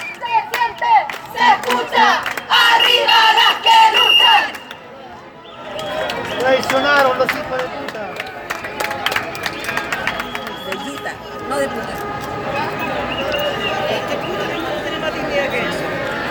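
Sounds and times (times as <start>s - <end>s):
protest crowd shouting: 0.0s - 16.2s.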